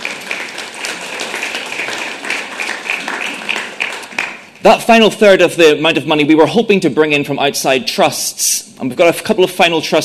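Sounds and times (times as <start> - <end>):
audience applause: 0.0 - 4.5
speech: 4.6 - 10.0.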